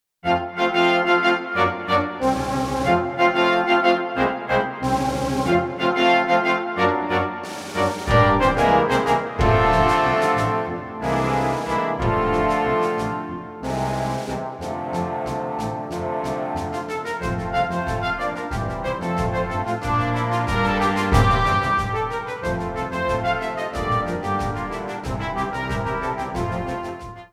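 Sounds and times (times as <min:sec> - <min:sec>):
calypso music: 0:00.3 - 0:27.3.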